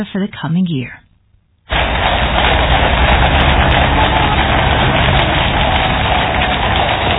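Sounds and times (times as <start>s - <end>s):
speech: 0.0s - 1.0s
carriage wheels rolling through the rain: 1.7s - 7.1s
horses' hooves in the rain: 1.7s - 7.1s.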